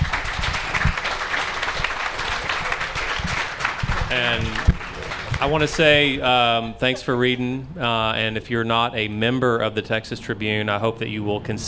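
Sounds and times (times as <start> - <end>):
audience applause for panelists: 0.0 - 6.7
speech: 4.1 - 4.8, 5.4 - 11.6.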